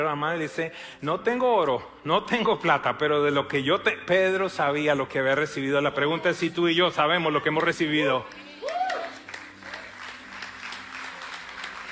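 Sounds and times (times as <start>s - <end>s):
speech: 0.0s - 8.4s
crowd applauding: 7.6s - 11.9s.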